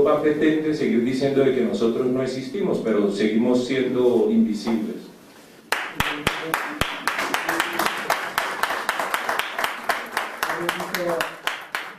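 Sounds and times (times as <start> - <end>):
speech: 0.0 - 5.1
crowd applauding: 5.7 - 11.9.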